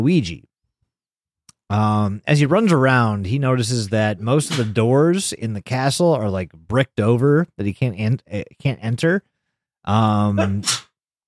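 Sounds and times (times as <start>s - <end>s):
speech: 0.0s - 0.5s, 1.7s - 10.9s
person sneezing: 10.4s - 11.0s.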